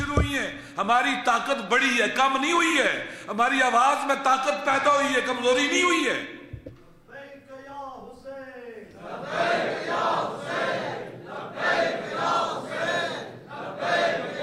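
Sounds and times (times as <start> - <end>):
speech: 0.4 - 6.4
crowd chanting slogans at a political rally in Pakistan: 9.0 - 14.4.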